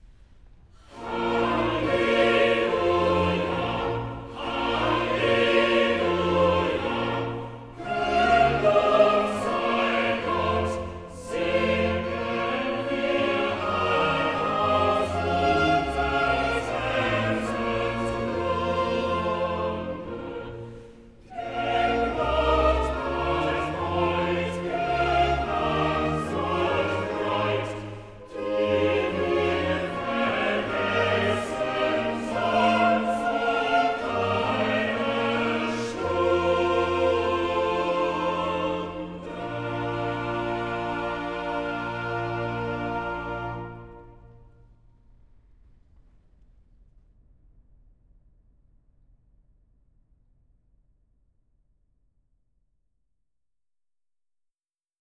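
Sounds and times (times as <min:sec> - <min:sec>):
choir singing: 0:00.8 - 0:44.6.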